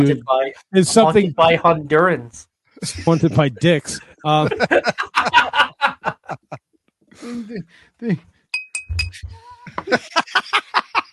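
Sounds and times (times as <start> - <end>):
speech: 0.0 - 5.6, 7.2 - 8.4
laughter: 2.8 - 6.6, 9.6 - 11.1
woodblock knocks: 8.6 - 9.4.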